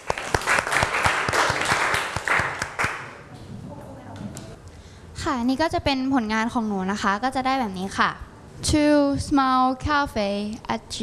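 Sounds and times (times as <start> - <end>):
applause from classmates: 0.0 - 3.2
speech: 5.2 - 11.0.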